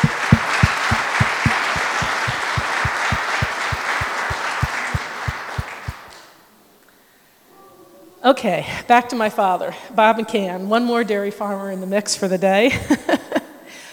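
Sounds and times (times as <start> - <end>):
audience applause: 0.0 - 6.1
speech: 8.3 - 13.2.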